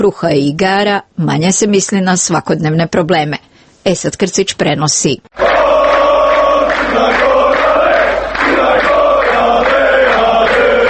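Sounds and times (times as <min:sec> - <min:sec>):
speech: 0:00.0 - 0:05.5
football fans chanting and cheering in a stadium: 0:05.4 - 0:10.8.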